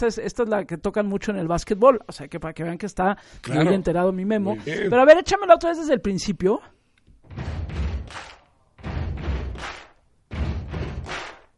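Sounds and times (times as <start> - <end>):
speech: 0.0 - 7.8
stomp stomp clap rhythm: 7.5 - 11.5.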